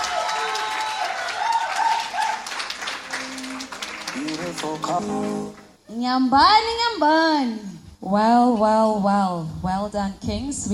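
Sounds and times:
voices calling out and cheering: 0.0s - 5.7s
crowd clapping: 0.0s - 5.8s
speech: 4.6s - 10.7s.

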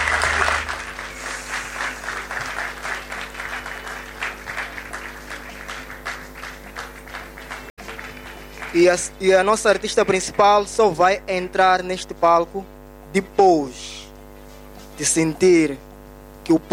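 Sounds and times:
audience applause: 0.0s - 10.1s
speech: 8.7s - 14.0s, 15.0s - 15.9s, 16.5s - 16.7s.

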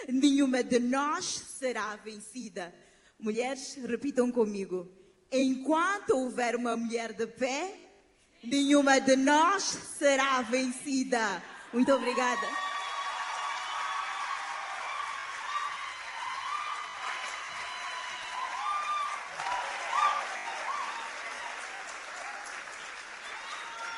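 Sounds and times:
speech: 0.0s - 7.8s, 8.4s - 12.6s
audience applause: 12.3s - 23.9s.

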